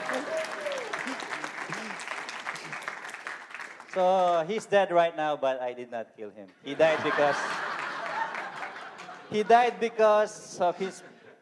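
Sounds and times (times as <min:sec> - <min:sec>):
audience clapping: 0:00.0 - 0:04.5, 0:07.4 - 0:09.3
speech: 0:04.0 - 0:07.7, 0:09.3 - 0:11.1
laughter: 0:06.6 - 0:11.3.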